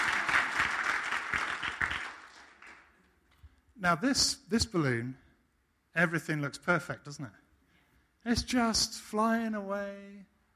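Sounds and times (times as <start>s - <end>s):
audience applause: 0.0s - 2.9s
speech: 3.8s - 5.2s, 6.0s - 7.4s, 8.2s - 10.3s.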